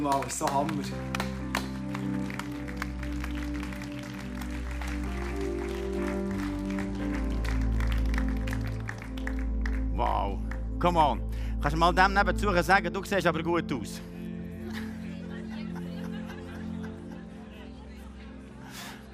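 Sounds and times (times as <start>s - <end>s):
speech: 0.0s - 1.4s, 10.8s - 14.1s
audience applause: 0.0s - 9.9s
laughter: 14.6s - 19.1s.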